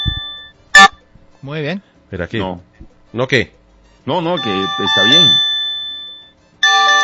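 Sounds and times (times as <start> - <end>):
built-in Google alert tone on an Android phone: 0.0 - 1.0, 4.3 - 7.0
speech: 1.4 - 5.5
loud bright multi-toned chime: 4.4 - 7.0.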